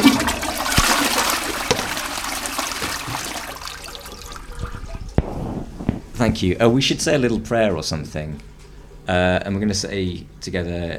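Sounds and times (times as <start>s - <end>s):
toilet flushing: 0.0s - 5.2s
speech: 6.2s - 10.9s.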